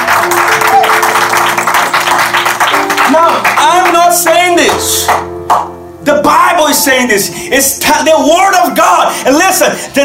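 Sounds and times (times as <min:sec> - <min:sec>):
audience clapping: 0:00.0 - 0:05.7
speech: 0:04.1 - 0:05.3, 0:06.8 - 0:10.0.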